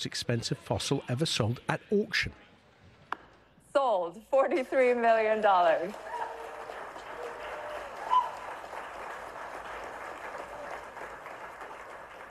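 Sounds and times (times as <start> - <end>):
speech: 0.0 - 2.5, 3.7 - 6.1
enthusiastic clapping at auction: 5.8 - 12.2.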